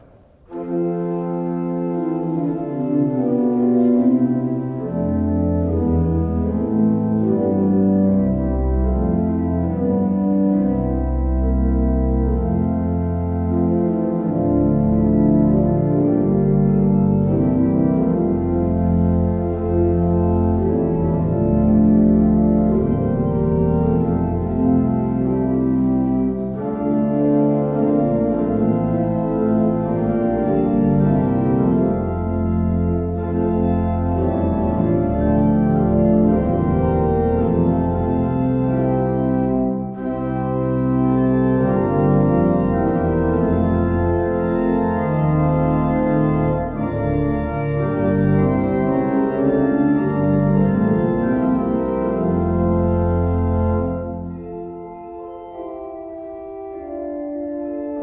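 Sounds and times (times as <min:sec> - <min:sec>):
pipe organ: 0:00.0 - 0:58.0.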